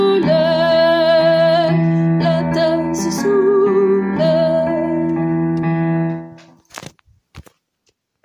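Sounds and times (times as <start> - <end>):
alto voice singing: 0.0 - 5.4.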